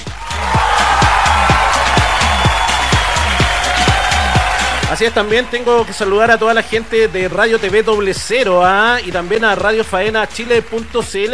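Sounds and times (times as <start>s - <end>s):
crowd applause: 0.0s - 7.8s
low thumping beat: 0.0s - 11.3s
speech: 5.0s - 11.3s.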